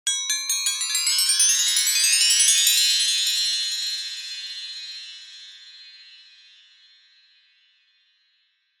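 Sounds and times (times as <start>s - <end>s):
magic spell metallic ascending chimes: 0.1s - 6.2s.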